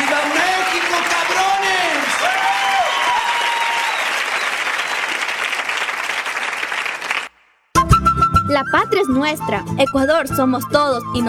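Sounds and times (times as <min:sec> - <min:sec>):
audience applause: 0:00.0 - 0:07.4
speech: 0:08.7 - 0:11.2.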